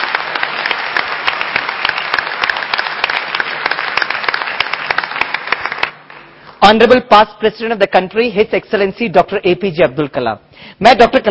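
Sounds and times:
audience applause: 0.0 - 6.1
speech: 6.6 - 11.2.

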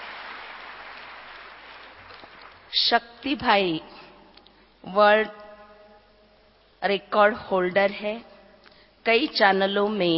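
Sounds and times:
audience applause welcoming an elderly guest at a DVD release event: 0.0 - 2.7
speech: 2.7 - 4.1, 4.8 - 5.4, 6.8 - 8.3, 9.0 - 10.1.

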